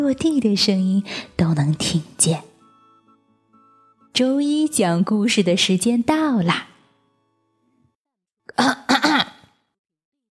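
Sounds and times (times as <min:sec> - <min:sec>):
speech: 0:00.0 - 0:02.5, 0:04.2 - 0:06.7, 0:08.6 - 0:09.2
throat clearing: 0:08.5 - 0:09.6.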